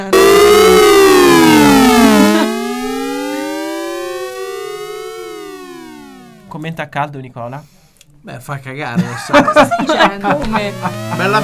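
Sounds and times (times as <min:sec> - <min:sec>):
synth triple glissando with triangle, sawtooth and square waves: 0:00.0 - 0:06.5, 0:10.4 - 0:11.4
speech: 0:06.7 - 0:11.4.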